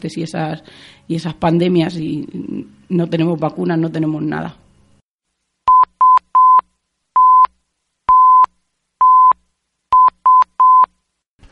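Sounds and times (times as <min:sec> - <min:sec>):
speech: 0:00.0 - 0:04.6
telephone message signal beeps: 0:05.7 - 0:06.6, 0:07.2 - 0:07.5, 0:08.1 - 0:09.4, 0:10.0 - 0:10.9.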